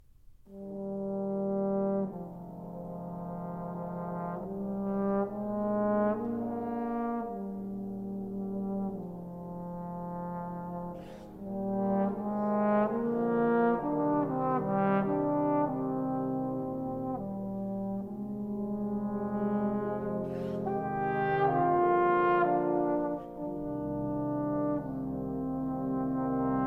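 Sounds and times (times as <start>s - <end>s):
trombone concerto adagio: 0.5s - 26.6s.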